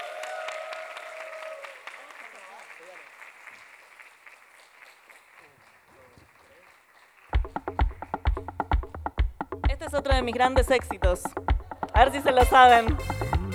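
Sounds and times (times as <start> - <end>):
audience applause at a live show: 0.0 - 7.4
speech: 9.8 - 13.4.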